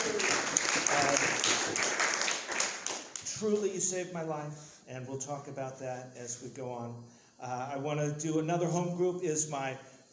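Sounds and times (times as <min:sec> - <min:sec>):
applause: 0:00.0 - 0:03.7
speech: 0:03.4 - 0:09.9.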